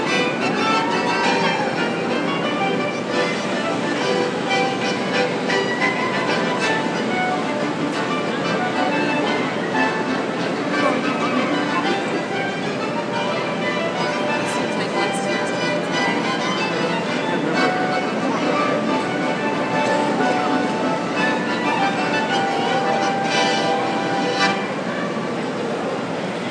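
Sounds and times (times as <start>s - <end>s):
street musicians playing at St Lawrence Market: 0.0s - 26.4s.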